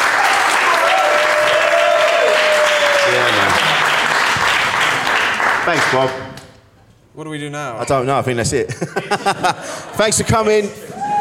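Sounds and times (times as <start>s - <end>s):
drawn-out cheer: 0.0s - 3.8s, 10.8s - 11.1s
audience applause: 0.0s - 6.2s
speech: 5.7s - 6.3s, 7.2s - 11.0s
laughter: 8.6s - 11.0s.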